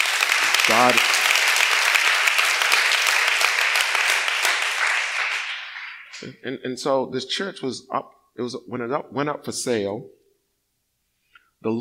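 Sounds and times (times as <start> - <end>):
people clapping: 0.0 - 6.4
speech: 0.7 - 1.2, 6.2 - 10.2.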